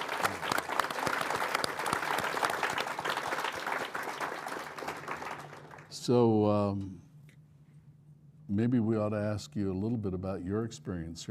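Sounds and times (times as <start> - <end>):
clapping applause: 0.0 - 6.0
speech: 6.1 - 7.0, 8.5 - 11.2.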